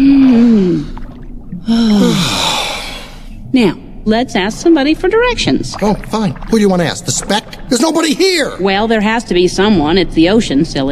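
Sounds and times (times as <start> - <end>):
deep breath: 1.6 - 3.4
speech: 3.6 - 10.9.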